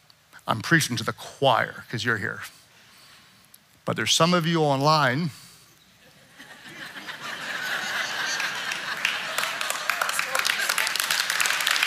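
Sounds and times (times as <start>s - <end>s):
speech: 0.5s - 2.6s, 3.9s - 5.4s
laughter: 6.0s - 11.4s
audience clapping: 7.5s - 11.8s.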